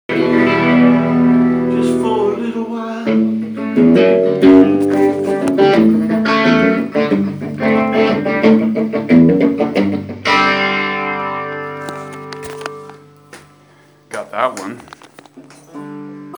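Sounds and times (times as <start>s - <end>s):
short riff: 0.1s - 13.7s.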